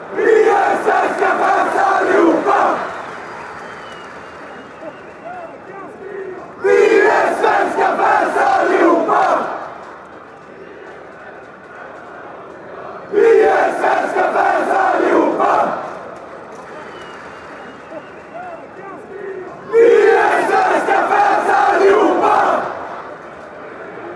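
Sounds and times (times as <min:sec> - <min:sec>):
Swedish fans chanting: 0:00.0 - 0:03.0, 0:04.8 - 0:09.8, 0:10.6 - 0:16.1, 0:18.4 - 0:23.2.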